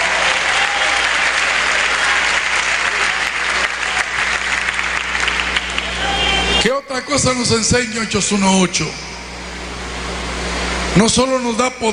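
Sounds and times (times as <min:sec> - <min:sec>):
audience applause: 0:00.0 - 0:06.6
speech: 0:06.9 - 0:09.1, 0:11.0 - 0:11.9.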